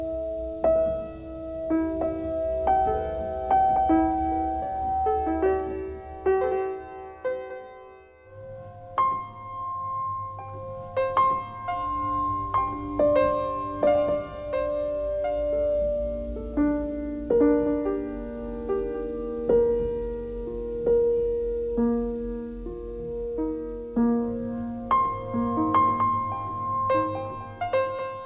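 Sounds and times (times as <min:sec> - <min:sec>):
piano noise: 0:00.0 - 0:28.2.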